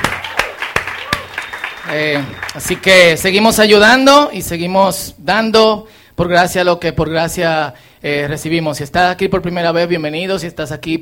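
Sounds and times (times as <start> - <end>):
applause: 0.0 - 3.3
speech: 1.9 - 11.0.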